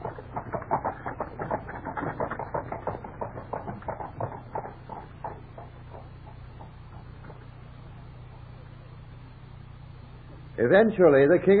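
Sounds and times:
hooves of horses pulling a coach: 0:00.0 - 0:08.8
speech: 0:10.6 - 0:11.5.

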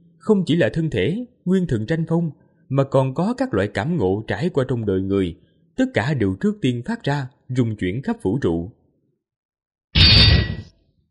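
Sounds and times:
speech: 0:00.2 - 0:08.8
explosive clash of fist against sword: 0:10.0 - 0:10.7.

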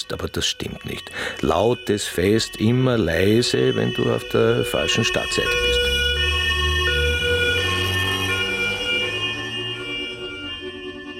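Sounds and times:
speech: 0:00.1 - 0:05.9
police car siren: 0:02.3 - 0:11.1.

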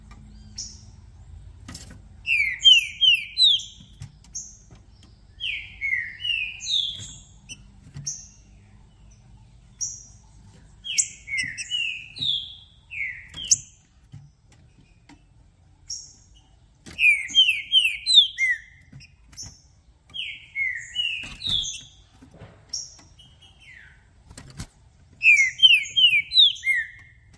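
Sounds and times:
Green-winged saltator song: 0:02.3 - 0:03.9, 0:05.4 - 0:07.6, 0:10.8 - 0:13.7, 0:17.0 - 0:18.8, 0:20.2 - 0:22.0, 0:25.2 - 0:27.2.

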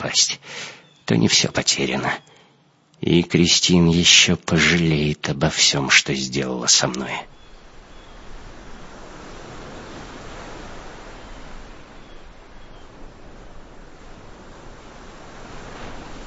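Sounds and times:
speech: 0:00.1 - 0:02.3, 0:03.0 - 0:07.4
ocean waves and surf: 0:06.7 - 0:16.2.

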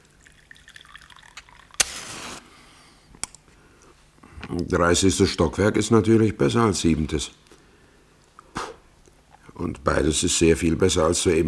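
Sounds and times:
water pouring into a glass: 0:00.0 - 0:02.4
speech: 0:04.5 - 0:07.4, 0:09.8 - 0:11.4.

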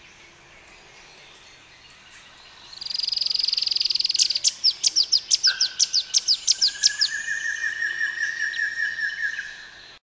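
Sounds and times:
streak-capped antwren Terenura maculata chipping: 0:02.0 - 0:09.7.

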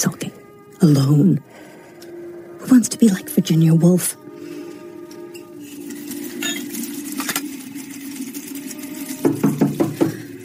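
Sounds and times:
speech: 0:00.0 - 0:00.2, 0:00.8 - 0:01.6, 0:02.6 - 0:04.2
knocking on a door: 0:09.2 - 0:10.2.

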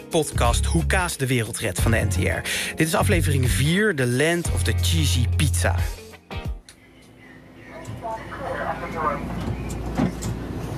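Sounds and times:
speech: 0:00.1 - 0:06.0
driverless metro train running from the San Francisco airport: 0:07.7 - 0:10.7.

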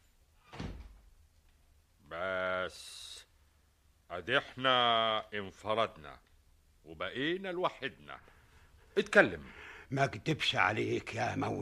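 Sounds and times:
low noise: 0:00.0 - 0:11.6
door shutting: 0:00.4 - 0:01.1
speech: 0:04.2 - 0:08.4, 0:09.0 - 0:11.6.

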